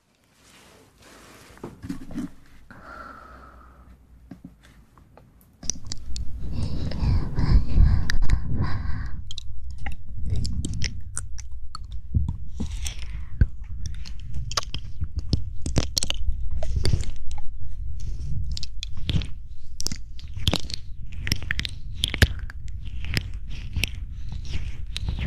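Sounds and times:
mouth clicks, crunching and chewing: 5.5s - 25.2s.

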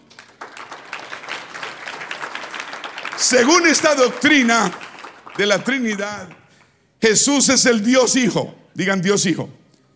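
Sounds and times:
audience applause: 0.0s - 6.6s
speech: 3.2s - 4.8s, 5.4s - 6.4s, 7.0s - 9.6s.

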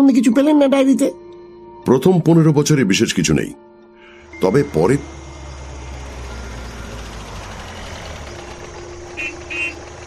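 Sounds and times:
speech: 0.0s - 1.2s, 1.8s - 3.6s, 4.4s - 5.2s
Fiat car pulling up outside a gate: 4.1s - 10.0s
Fiat car horn honks: 9.1s - 10.0s.

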